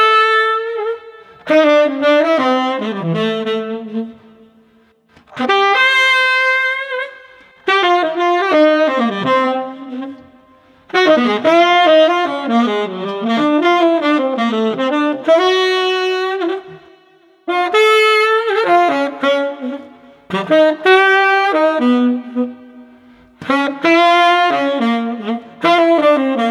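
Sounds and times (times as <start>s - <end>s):
groovy tenor saxophone: 0.0s - 26.4s.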